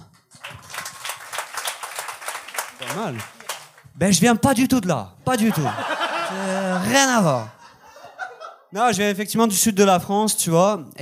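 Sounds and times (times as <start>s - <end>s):
audience applause: 0.2s - 3.9s
speech: 2.8s - 3.4s, 4.0s - 7.6s, 8.7s - 10.9s
laughter: 5.3s - 8.7s.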